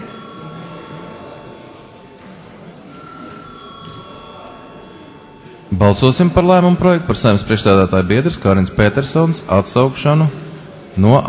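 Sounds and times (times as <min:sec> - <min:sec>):
electric bell ringing before a vote: 0:00.0 - 0:08.2
low murmur of voices: 0:00.0 - 0:11.2
speech: 0:05.7 - 0:11.2.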